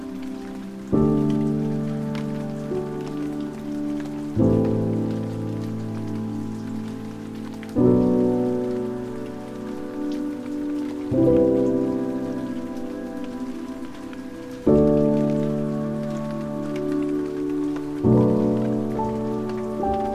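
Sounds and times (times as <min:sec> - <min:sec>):
piano: 0:00.0 - 0:20.1
rain: 0:00.0 - 0:20.1.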